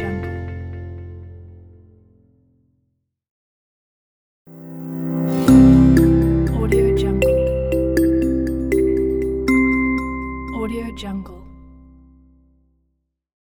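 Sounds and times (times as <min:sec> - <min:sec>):
educational logo jingle: 0:04.6 - 0:12.0.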